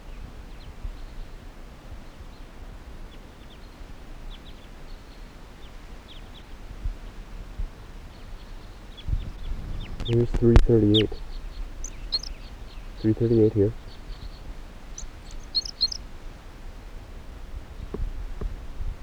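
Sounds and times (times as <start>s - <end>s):
red crossbill type 2 calls: 8.0s - 17.7s
speech: 10.1s - 11.3s, 13.0s - 13.8s.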